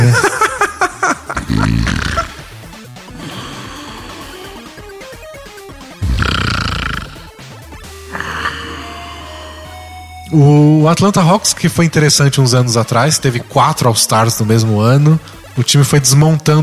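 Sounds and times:
laughter: 0.0 - 2.5
snoring nap sound effect: 1.5 - 2.6, 6.0 - 9.8
speech: 10.4 - 16.6.

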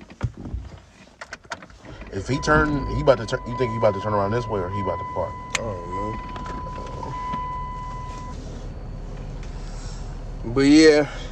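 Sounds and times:
car being driven: 0.0 - 11.2
speech: 2.1 - 6.3, 10.5 - 11.2
thin sustained beep-like tone: 2.2 - 8.4.

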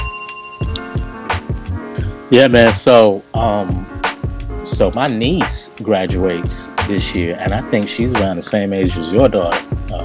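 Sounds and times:
bell ringing: 0.0 - 1.1
speech: 2.3 - 3.9, 4.6 - 10.0.

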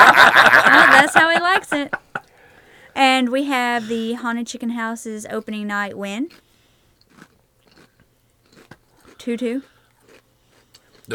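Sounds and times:
laughter: 0.0 - 2.2
speech: 3.8 - 6.5, 9.2 - 9.7
crunching chips while eating: 7.0 - 11.1.

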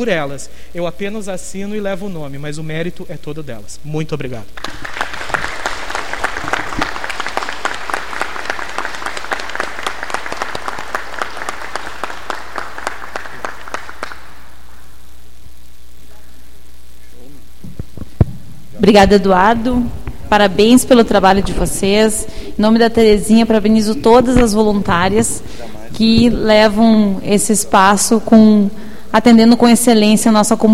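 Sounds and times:
speech: 0.0 - 5.0, 18.8 - 30.7
round of applause: 4.6 - 14.6.

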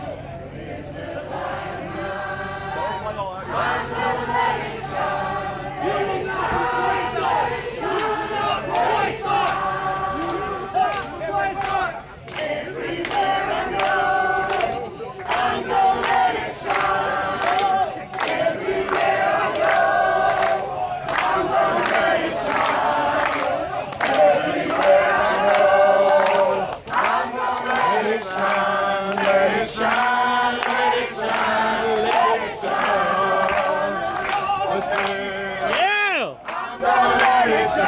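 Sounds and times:
large crowd of protesters singing together: 0.0 - 37.8
rhythmic claps or shouts: 5.9 - 37.8.

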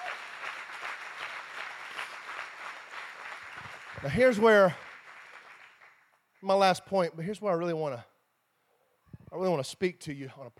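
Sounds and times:
audience clapping hands: 0.0 - 6.8
speech: 4.0 - 4.8, 6.4 - 8.1, 9.3 - 10.5.

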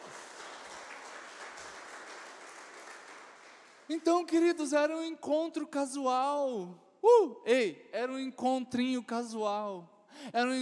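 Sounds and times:
audience applause: 0.0 - 3.9
speech: 3.9 - 10.6.

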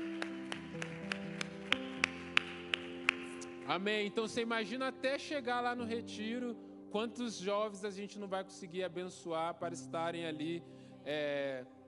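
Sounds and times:
audience applauding: 0.0 - 3.9
speech: 3.7 - 11.8.

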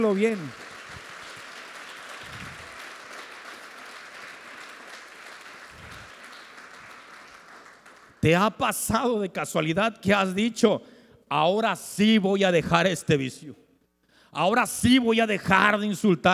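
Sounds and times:
speech: 0.0 - 0.6, 8.2 - 13.6, 14.3 - 16.3
audience applause: 0.0 - 8.2.

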